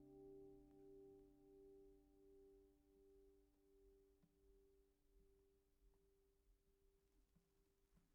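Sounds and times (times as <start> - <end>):
guitar recorded with a Neumann TLM170 cardioid microphone: 0.0 - 4.0.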